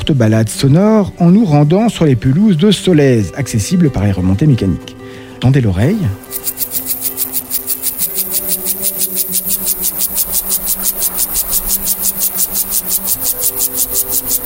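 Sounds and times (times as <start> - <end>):
speech: 0.1 - 6.7
Siberian grasshopper Gomphocerus sibiricus stridulating: 6.2 - 14.4.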